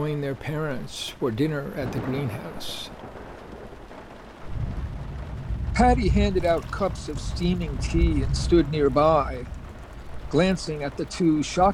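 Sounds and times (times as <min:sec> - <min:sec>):
speech: 0:00.0 - 0:03.3, 0:05.8 - 0:09.6, 0:10.3 - 0:11.7
steady rain falling: 0:00.0 - 0:11.7
low rumble: 0:04.4 - 0:11.7.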